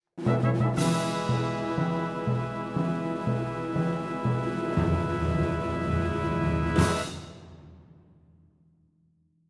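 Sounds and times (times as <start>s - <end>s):
ta-da fanfare: 0.2s - 7.4s.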